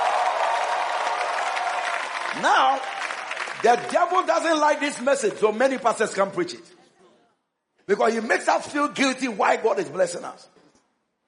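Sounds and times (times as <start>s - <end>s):
audience clapping: 0.0s - 6.3s
speech: 2.3s - 3.0s, 3.6s - 6.8s, 7.9s - 10.6s.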